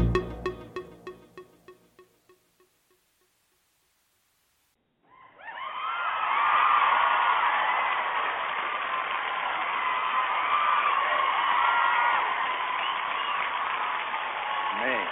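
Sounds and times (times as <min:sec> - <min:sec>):
adoring crowd cheering, whooping and screaming: 0:05.2 - 0:15.1.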